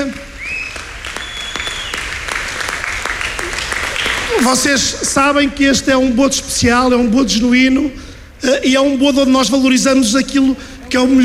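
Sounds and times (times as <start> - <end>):
outdoor audience applause: 0.0 - 4.6
speech: 4.4 - 11.2.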